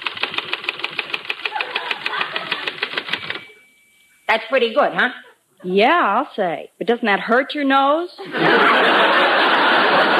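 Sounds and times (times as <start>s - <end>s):
rapid typewriter typing: 0.0s - 3.6s
laughter: 1.5s - 2.9s, 8.2s - 10.1s
speech: 4.4s - 10.1s.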